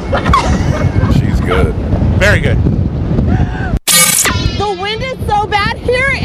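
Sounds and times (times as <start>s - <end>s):
speech: 0.1s - 0.5s, 1.5s - 3.4s
bright hissing burst: 3.9s - 5.6s
TV news scene-change graphic rushing whoosh: 3.9s - 6.1s.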